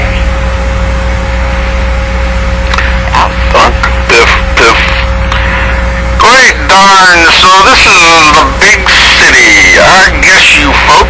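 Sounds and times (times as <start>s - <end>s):
helicopters approaching: 0.0s - 11.0s
rough bursts of noise: 1.4s - 11.0s
speech: 6.9s - 11.0s.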